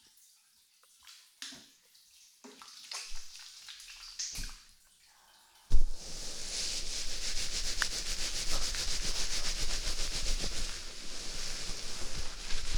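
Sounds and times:
vigorous hair shampooing ASMR: 0:05.7 - 0:12.7.

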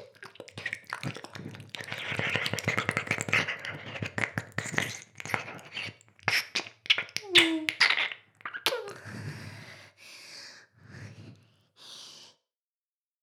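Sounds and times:
ear licking: 0:00.0 - 0:09.0.

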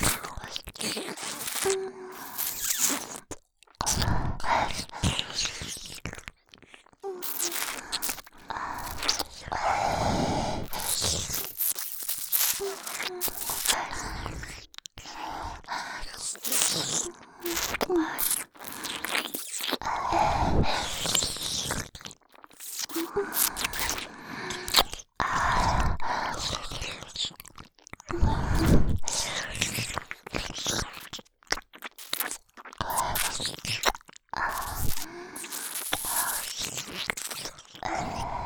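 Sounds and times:
ASMR licking of both ears: 0:00.0 - 0:38.4.

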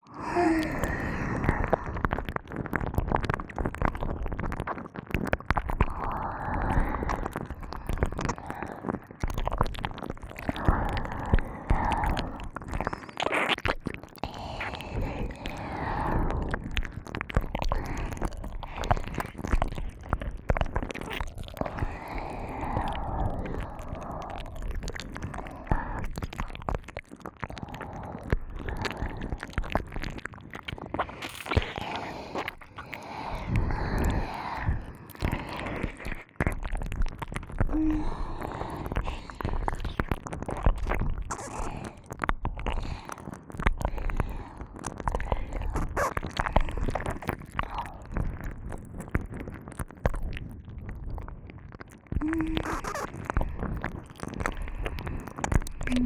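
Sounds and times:
licking of both ears: 0:00.2 - 0:56.0.

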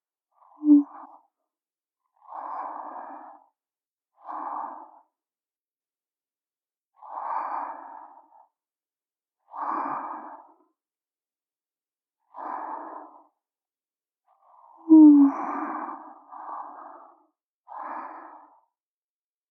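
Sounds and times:
student breathing in sleep: 0:02.2 - 0:03.6, 0:04.2 - 0:05.2, 0:07.0 - 0:08.6, 0:09.5 - 0:10.7, 0:12.3 - 0:13.4, 0:14.6 - 0:18.8.

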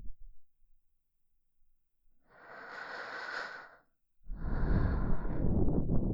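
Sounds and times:
person breathing in the left ear: 0:02.2 - 0:06.0.

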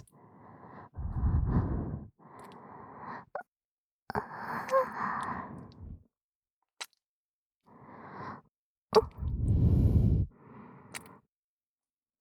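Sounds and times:
person whispering into the ear: 0:01.0 - 0:02.1, 0:09.0 - 0:10.3.

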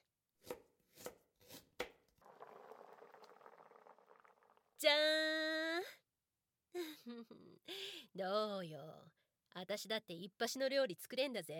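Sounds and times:
knife chopping food while cooking: 0:00.4 - 0:02.0
bubbling sizzle of cooking food: 0:02.1 - 0:04.9
speech: 0:07.1 - 0:11.5.

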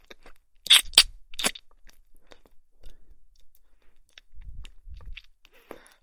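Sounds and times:
kissing sounds: 0:00.7 - 0:01.6.

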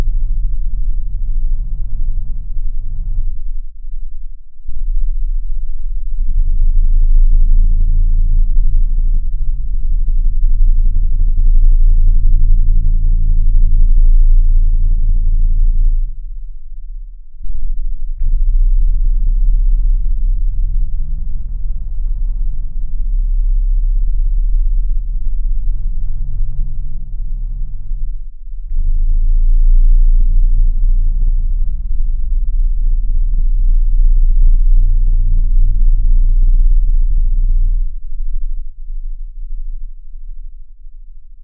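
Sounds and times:
10 Hz to 30 Hz low frequency tone: 0:00.0 - 0:41.4.

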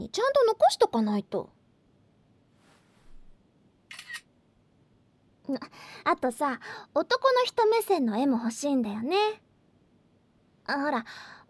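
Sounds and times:
speech: 0:00.1 - 0:01.6, 0:05.5 - 0:09.4, 0:10.7 - 0:11.4
smartphone camera shutter click: 0:03.9 - 0:04.3.

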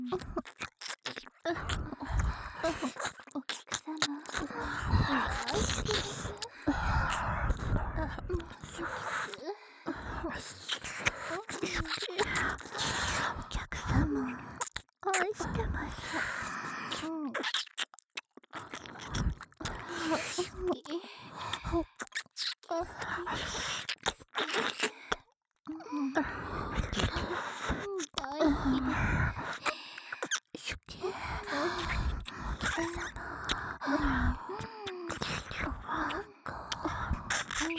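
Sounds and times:
kissing and licking sounds in both ears: 0:00.1 - 0:02.2, 0:10.6 - 0:15.5, 0:16.9 - 0:20.8, 0:21.4 - 0:25.2, 0:26.8 - 0:30.8, 0:31.4 - 0:37.7
person whispering lewd words: 0:01.5 - 0:16.3, 0:19.0 - 0:21.9, 0:25.7 - 0:37.7.

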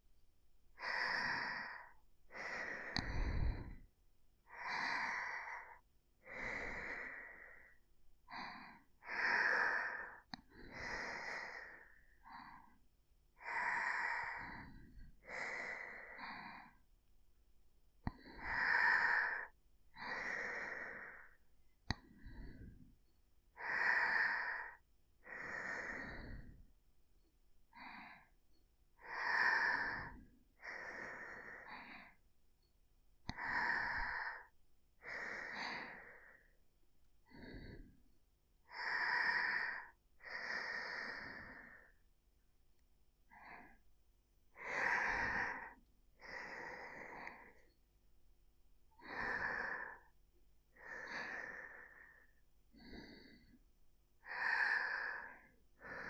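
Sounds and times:
sleeping breath: 0:00.8 - 0:12.8, 0:13.4 - 0:16.9, 0:18.1 - 0:26.8, 0:29.0 - 0:32.2, 0:33.3 - 0:36.6, 0:37.2 - 0:42.0, 0:43.3 - 0:43.8, 0:44.5 - 0:47.8, 0:48.9 - 0:53.6, 0:54.2 - 0:56.0.

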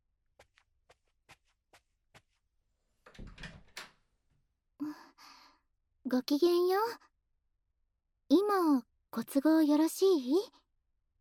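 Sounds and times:
door clicks while being opened: 0:03.0 - 0:04.1
speech: 0:06.1 - 0:07.1, 0:08.5 - 0:10.6.

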